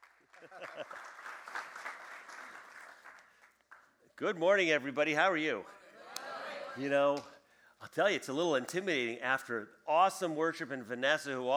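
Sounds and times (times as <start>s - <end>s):
audience applause welcoming a pastor at a church gathering: 0.0s - 4.0s
speech: 4.2s - 5.8s, 6.8s - 11.5s.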